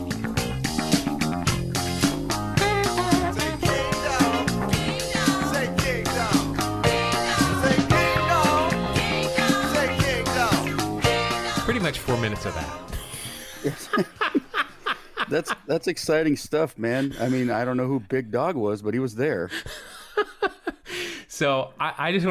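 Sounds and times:
smooth 1981 song with full band: 0.0s - 14.1s
speech: 12.1s - 12.9s, 13.6s - 14.2s, 15.3s - 19.8s, 21.4s - 22.2s
laughter: 13.0s - 15.8s, 16.8s - 18.0s, 19.6s - 20.9s.

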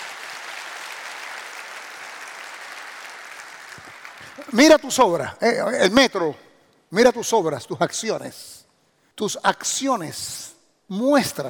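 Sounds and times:
audience applause: 0.0s - 4.5s
speech: 3.8s - 8.6s, 9.2s - 11.4s.

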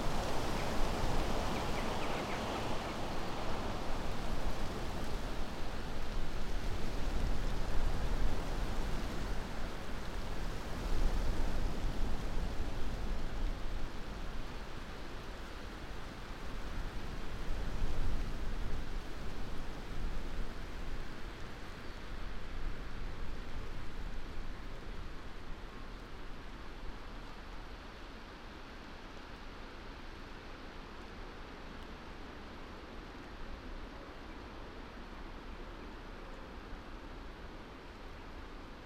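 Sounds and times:
wind in trees in the hills above Wooler in Northumberland: 0.0s - 38.8s.

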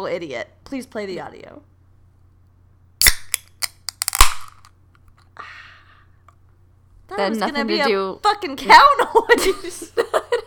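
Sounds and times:
speech: 0.0s - 1.7s, 7.1s - 10.4s
beer can cracking open: 3.0s - 4.7s.

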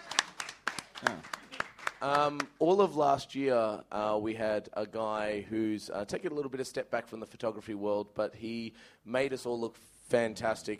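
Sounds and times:
audience round of applause: 0.0s - 2.5s
speech: 2.0s - 10.7s.

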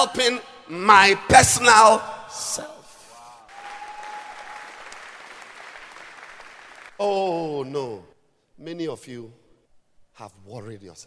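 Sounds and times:
speech: 0.0s - 2.8s, 7.0s - 9.4s, 10.2s - 11.0s
audience clapping hands: 3.5s - 7.0s.

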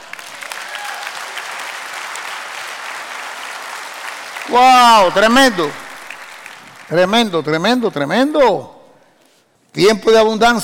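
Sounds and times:
audience clapping: 0.0s - 7.8s
speech: 4.5s - 5.8s, 6.9s - 8.8s, 9.8s - 10.6s.

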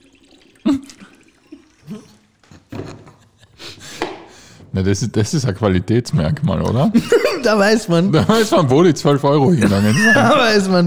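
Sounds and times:
person drinking from a bottle, slurping and gulping: 0.0s - 2.7s
speech: 4.8s - 10.8s
laughter: 6.9s - 8.8s, 9.4s - 10.7s.

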